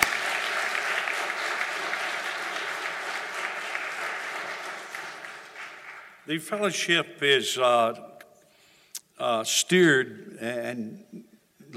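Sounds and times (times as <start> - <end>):
audience applause: 0.0 - 6.2
speech: 6.3 - 8.1, 9.2 - 11.7.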